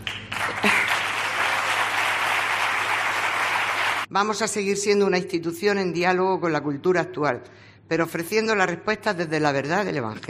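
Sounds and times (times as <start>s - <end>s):
audience applause: 0.0s - 4.1s
speech: 4.2s - 10.2s.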